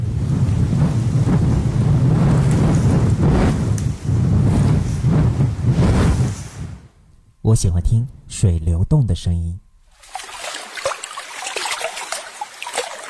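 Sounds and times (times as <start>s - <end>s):
strong wind roaring: 0.0s - 7.1s
speech: 7.5s - 9.6s.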